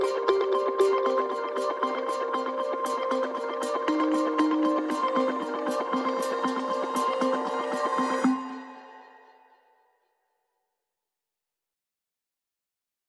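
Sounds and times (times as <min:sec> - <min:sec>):
lead melody motif: 0:00.0 - 0:08.6.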